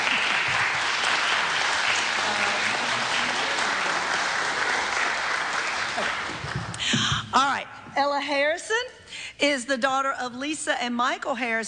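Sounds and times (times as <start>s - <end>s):
audience applause: 0.0s - 6.9s
speech: 8.0s - 11.6s.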